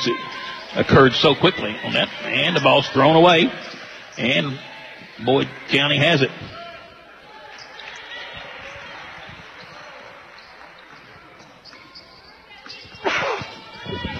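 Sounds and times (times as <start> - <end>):
speech: 0.0 - 6.6
crowd murmur: 0.0 - 14.1
commentator sneezing: 13.1 - 13.4.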